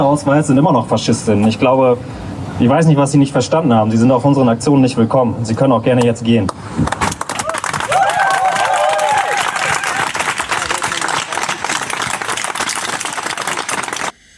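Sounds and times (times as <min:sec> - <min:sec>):
speech: 0:00.1 - 0:07.0
crowd clapping: 0:06.5 - 0:14.2
crowd shouting and whooping: 0:07.3 - 0:12.0.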